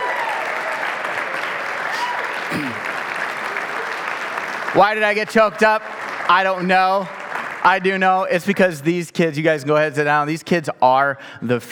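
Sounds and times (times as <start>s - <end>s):
crowd applause: 0.0s - 8.4s
speech: 4.7s - 11.7s.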